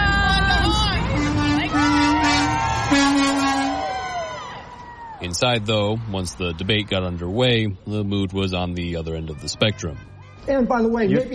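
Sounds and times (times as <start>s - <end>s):
car horns honking: 0.0s - 4.1s, 8.5s - 11.3s
crowd cheering: 0.0s - 10.4s
speech: 5.4s - 11.3s.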